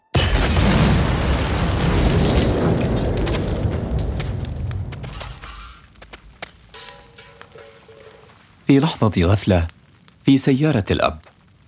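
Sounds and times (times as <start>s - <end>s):
car bomb explosion: 0.2s - 5.6s
crackles and pops of debris: 0.2s - 11.6s
speech: 8.7s - 11.3s.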